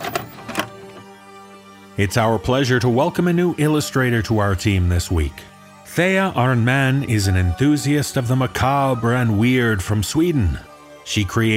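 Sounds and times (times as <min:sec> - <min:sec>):
VCR mechanism starting to play tape: 0:00.0 - 0:01.1
speech: 0:02.0 - 0:11.5.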